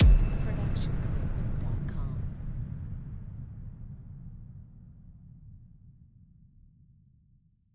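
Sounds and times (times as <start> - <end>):
epic impact hit: 0.0 - 4.5.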